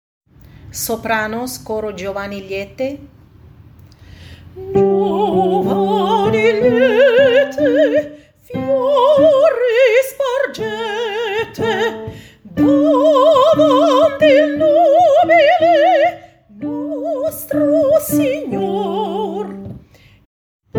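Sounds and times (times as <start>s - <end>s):
soprano voices singing: 4.6s - 19.8s.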